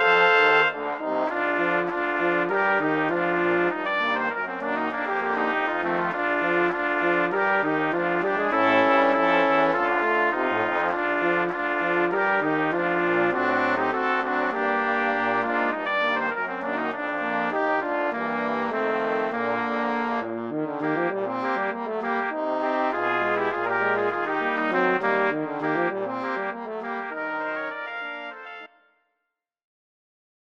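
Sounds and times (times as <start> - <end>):
brass quintet playing ragtime: 0.0 - 28.8.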